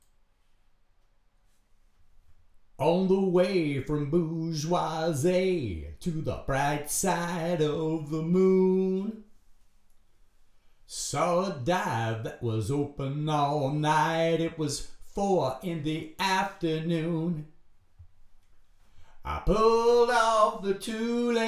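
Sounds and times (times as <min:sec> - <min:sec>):
person singing: 0:02.8 - 0:09.2, 0:10.9 - 0:17.4, 0:19.2 - 0:21.4.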